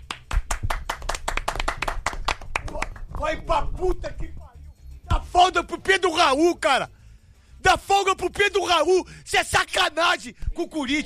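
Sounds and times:
round of applause, hand clapping: 0.0s - 3.4s
speech: 3.2s - 4.4s, 5.2s - 7.0s, 7.6s - 11.0s.

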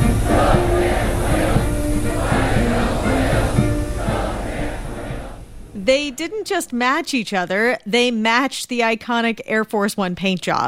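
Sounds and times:
300 Chinese teens chanting a welcome in unison at an airport arrival ceremony: 0.0s - 5.6s
crowd noise: 0.0s - 6.6s
speech: 5.9s - 10.6s.

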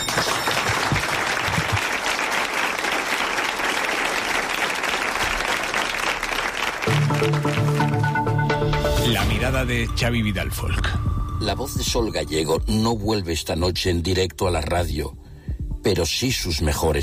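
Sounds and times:
applause after a minute of silence: 0.0s - 8.5s
speech: 9.1s - 15.2s, 15.8s - 17.0s.

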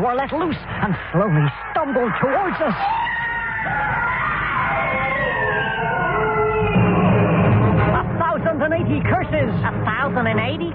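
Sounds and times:
speech: 0.0s - 3.0s, 3.6s - 6.0s, 8.5s - 10.7s
crowd going wild, screaming: 1.1s - 7.9s.

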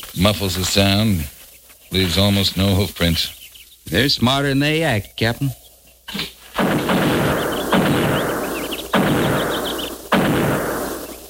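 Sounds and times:
speech: 0.2s - 6.4s
buffalo guns firing: 6.6s - 11.2s.

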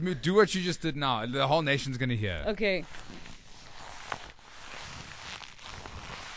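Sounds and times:
speech: 0.0s - 3.2s
leather jacket creaking and rustling with movement: 2.8s - 6.3s.

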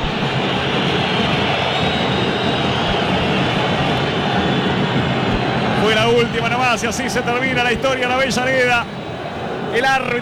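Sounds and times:
stadium crowd whistling in disapproval: 0.0s - 10.1s
speech: 6.2s - 9.0s, 9.7s - 10.1s.

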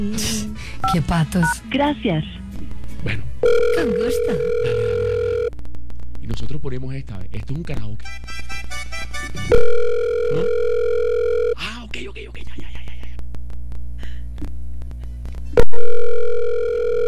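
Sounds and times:
speech: 0.0s - 2.4s, 3.0s - 5.0s, 6.3s - 8.2s
telephone ringing unanswered: 3.4s - 5.5s, 8.7s - 11.6s, 15.6s - 17.0s.

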